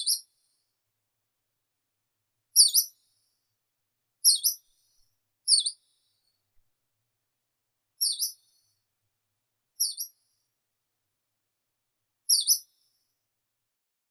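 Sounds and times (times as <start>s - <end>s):
Hume's leaf warbler Phylloscopus humei calling: 4.2s - 4.6s, 5.5s - 5.7s, 8.0s - 8.4s.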